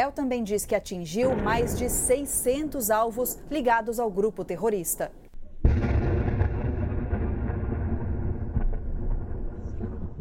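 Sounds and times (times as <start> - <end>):
speech: 0.0 - 5.9
Israeli war tank firing at a car: 5.6 - 10.1.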